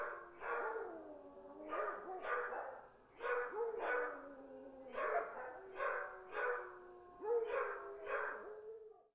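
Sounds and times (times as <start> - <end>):
dog barking: 0.0 - 0.8, 1.7 - 4.2, 4.9 - 8.4.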